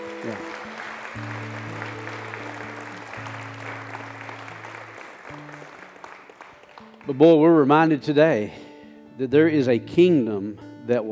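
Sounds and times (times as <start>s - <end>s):
audience applauding: 0.0s - 7.7s
speech: 0.2s - 0.6s, 7.1s - 8.6s, 9.2s - 11.1s.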